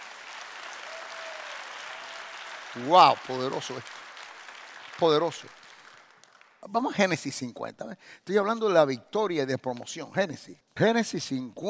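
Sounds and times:
audience applause: 0.0s - 6.6s
speech: 2.8s - 4.0s, 5.0s - 5.6s, 6.6s - 11.6s.

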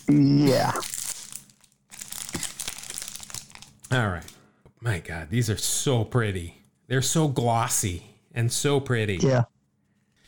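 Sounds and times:
tightly sealed baseball card pack wrapper being torn open: 0.0s - 4.0s
speech: 0.1s - 0.9s, 3.9s - 9.5s.

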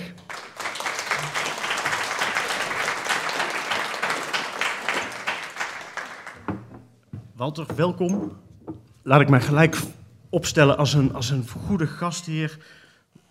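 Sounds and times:
audience applause: 0.0s - 6.7s
speech: 7.4s - 12.8s.

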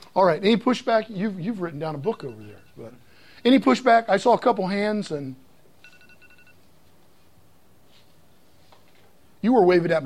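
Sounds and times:
low hum: 0.0s - 10.0s
speech: 0.2s - 5.4s, 9.4s - 10.0s
electronic timer beeps: 2.0s - 3.0s, 5.8s - 6.6s.

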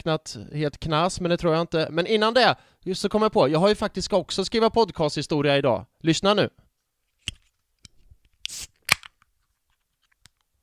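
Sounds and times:
speech: 0.0s - 6.6s, 8.5s - 8.7s
opening a strong beer: 8.4s - 9.2s.

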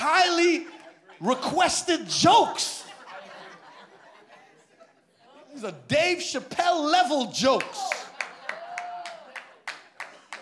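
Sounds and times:
laughter: 0.2s - 5.6s, 7.8s - 9.7s
speech: 0.6s - 2.8s, 5.6s - 8.0s
comedy show audience clapping: 7.6s - 10.4s.

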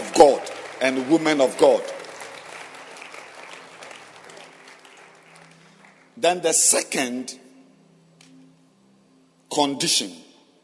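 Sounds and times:
audience clapping hands: 0.0s - 6.8s
speech: 0.2s - 1.9s, 6.2s - 7.4s, 9.6s - 10.2s.

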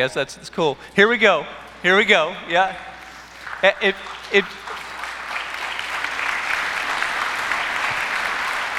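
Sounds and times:
speech: 0.0s - 2.9s, 3.6s - 4.9s
people clapping: 2.6s - 8.7s.

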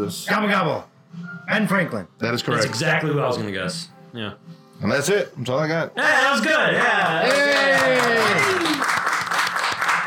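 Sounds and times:
speech: 0.0s - 8.8s
applause: 6.8s - 10.0s.

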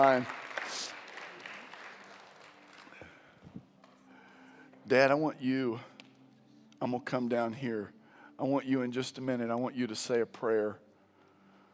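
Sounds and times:
speech: 0.0s - 0.8s, 4.9s - 5.9s, 6.8s - 10.8s
crowd applause: 0.0s - 3.0s.

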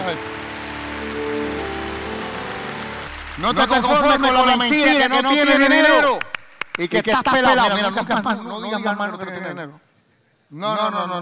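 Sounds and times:
audience applauding: 0.0s - 8.6s
speech: 3.4s - 9.9s, 10.5s - 11.2s.

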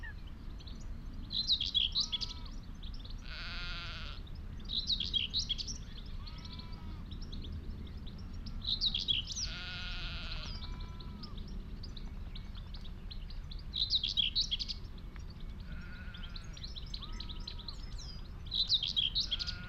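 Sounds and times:
bird song on Higham Marshes in Kent: 0.0s - 19.6s
low rumble of wind: 0.0s - 19.6s
sheep bleating: 2.0s - 2.6s, 3.2s - 4.2s, 6.2s - 7.0s, 9.4s - 11.4s, 15.7s - 17.8s, 19.2s - 19.6s.

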